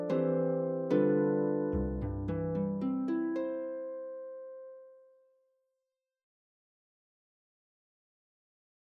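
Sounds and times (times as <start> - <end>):
popular folk song on the harp: 0.0 - 5.2.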